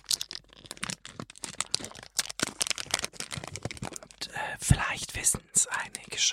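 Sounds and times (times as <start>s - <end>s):
packaging crinkling around individually wrapped items: 0.0s - 4.2s, 5.7s - 6.3s
speech: 4.6s - 6.3s.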